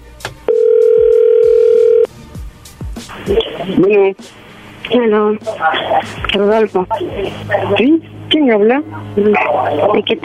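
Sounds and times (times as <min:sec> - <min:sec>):
telephone tone as call comes in: 0:00.5 - 0:02.1
speech: 0:03.3 - 0:10.2.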